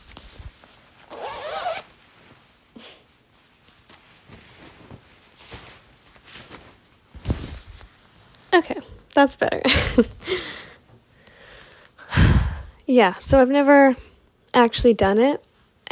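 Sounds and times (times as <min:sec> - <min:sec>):
rustling of noisy jacket fabric: 0:00.0 - 0:08.8
jacket zipper pulls: 0:01.0 - 0:01.9
speech: 0:08.6 - 0:10.5, 0:13.0 - 0:15.8.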